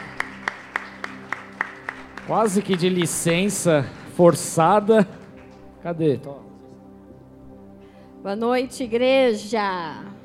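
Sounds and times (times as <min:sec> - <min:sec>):
applause: 0:00.0 - 0:05.8
speech: 0:02.3 - 0:05.2, 0:05.8 - 0:06.6, 0:08.2 - 0:10.1.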